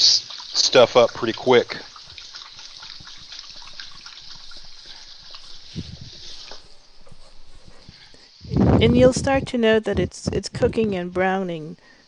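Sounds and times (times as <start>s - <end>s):
running tap water at a kitchen sink during hand washing: 0.0s - 7.6s
speech: 0.7s - 1.9s, 8.8s - 12.0s.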